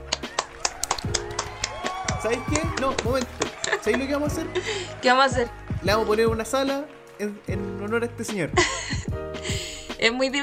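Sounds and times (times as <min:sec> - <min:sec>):
hand clapping: 0:00.0 - 0:08.5
speech: 0:02.2 - 0:09.0, 0:10.0 - 0:10.4
laughter: 0:02.5 - 0:05.2, 0:08.5 - 0:09.6.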